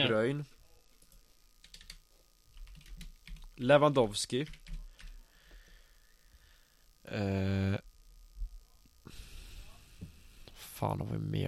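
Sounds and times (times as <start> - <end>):
speech: 0.0 - 0.6, 3.6 - 4.6, 7.1 - 7.9, 10.8 - 11.4
keyboard typing: 1.0 - 3.5, 4.4 - 5.2.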